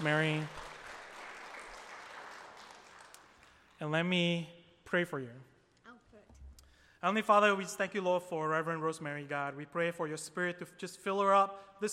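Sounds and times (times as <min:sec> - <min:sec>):
speech: 0:00.0 - 0:00.6, 0:03.8 - 0:05.5, 0:07.0 - 0:11.9
church congregation applauding to welcome a reverend up to speak: 0:00.0 - 0:03.8.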